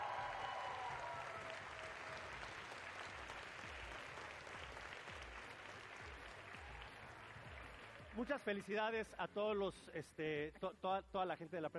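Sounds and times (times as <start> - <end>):
audience applause: 0.0 - 8.8
speech: 8.2 - 11.7.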